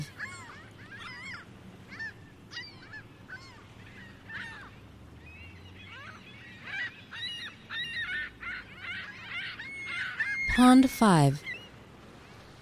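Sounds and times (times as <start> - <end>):
flock of gulls calling: 0.0 - 11.9
speech: 10.6 - 11.5.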